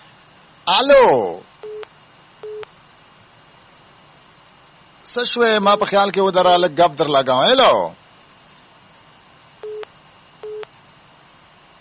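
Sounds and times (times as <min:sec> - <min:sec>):
speech: 0:00.7 - 0:01.5, 0:05.1 - 0:08.0
telephone busy tone after a dropped call: 0:09.6 - 0:10.7.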